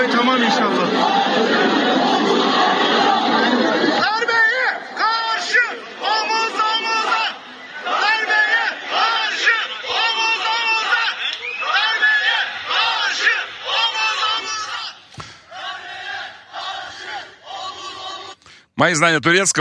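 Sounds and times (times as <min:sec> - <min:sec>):
speech: 0:00.0 - 0:02.1, 0:18.8 - 0:19.6
laughter: 0:00.0 - 0:18.0
street crowd chanting at a protest: 0:00.0 - 0:18.4.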